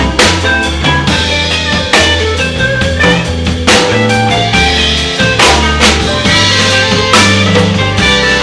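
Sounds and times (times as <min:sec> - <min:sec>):
Fender P Bass: 0:00.0 - 0:08.4.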